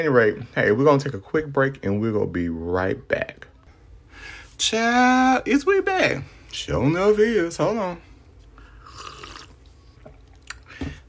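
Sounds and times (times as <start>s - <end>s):
speech: 0.0s - 3.5s, 4.2s - 8.1s
slurping sip of water from a bottle: 8.6s - 10.7s.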